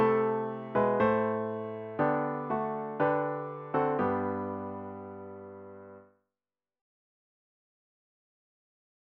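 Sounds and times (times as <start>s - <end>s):
hymn on piano with intro: 0.0s - 6.0s.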